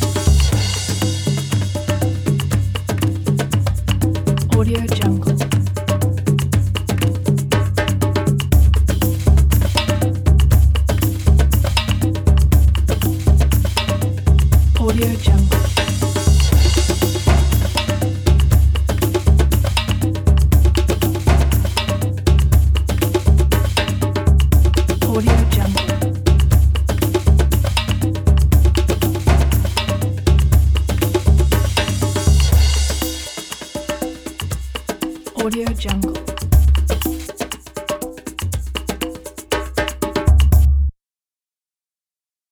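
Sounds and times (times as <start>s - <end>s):
ethnic drums percussion: 0.0s - 40.9s.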